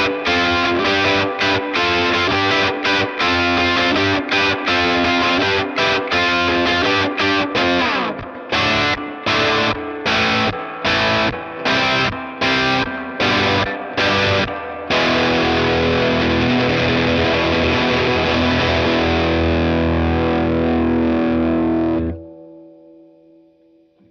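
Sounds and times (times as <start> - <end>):
rock guitar with ultra reverb through tweed amplifier: 0.0 - 24.1.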